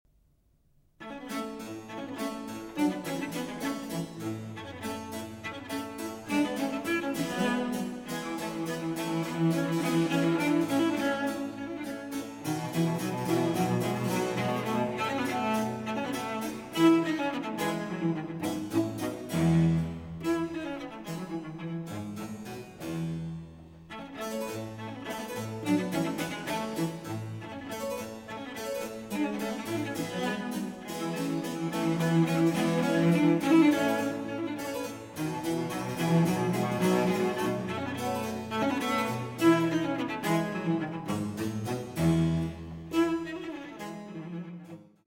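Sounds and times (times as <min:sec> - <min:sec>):
cello and continuo sonata: 0:00.8 - 0:45.0.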